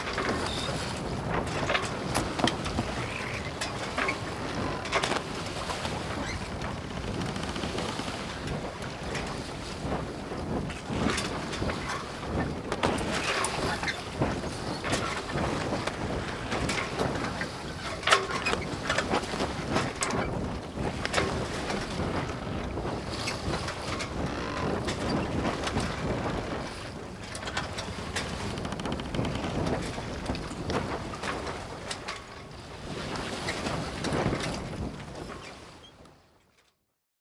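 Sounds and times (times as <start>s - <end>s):
sailboat: 0.0s - 36.9s.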